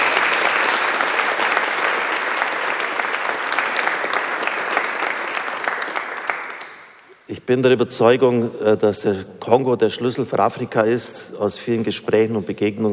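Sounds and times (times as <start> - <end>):
audience applause: 0.0 - 7.0
speech: 7.5 - 12.9.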